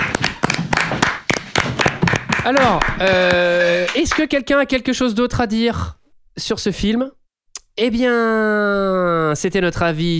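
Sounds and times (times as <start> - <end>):
applause all around outside: 0.0 - 4.2
speech: 2.4 - 7.2, 7.8 - 10.1.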